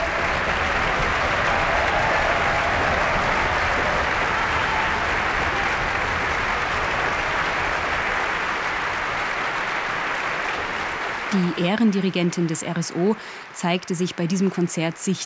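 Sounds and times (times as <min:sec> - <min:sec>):
concert audience applause for an orchestra: 0:00.0 - 0:15.2
speech: 0:11.3 - 0:15.2.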